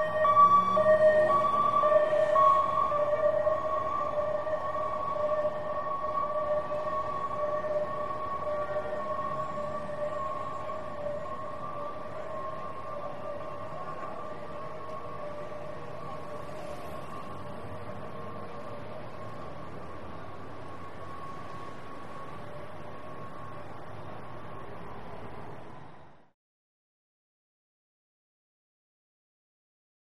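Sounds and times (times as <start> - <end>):
ambulance high-low siren passing: 0.0 - 26.4
traffic: 0.0 - 26.4.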